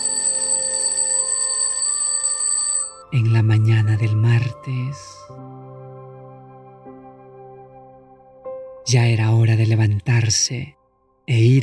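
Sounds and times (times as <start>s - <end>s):
alarm clock ringing: 0.0s - 3.1s
speech: 3.1s - 5.6s, 8.9s - 11.6s.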